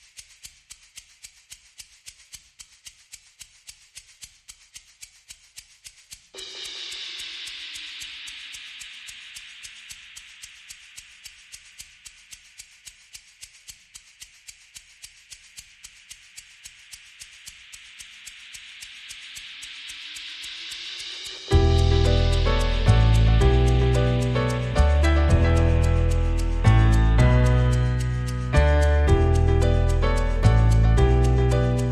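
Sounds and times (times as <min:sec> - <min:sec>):
piano: 0:21.4 - 0:31.8.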